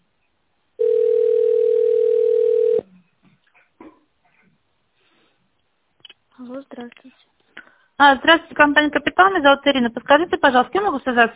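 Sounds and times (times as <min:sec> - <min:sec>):
telephone ringback tone while waiting on line: 0:00.8 - 0:02.9
speech: 0:06.8 - 0:07.3, 0:08.0 - 0:11.3.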